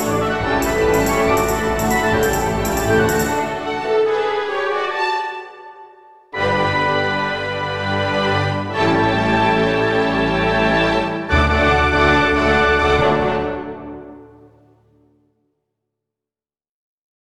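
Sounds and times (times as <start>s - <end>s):
full orchestra czardas accompaniment: 0.0s - 5.2s, 6.4s - 14.3s.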